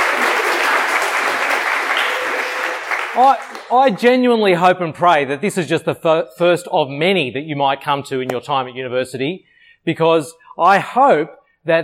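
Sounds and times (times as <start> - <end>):
audience applause: 0.0 - 4.0
speech: 3.2 - 11.8.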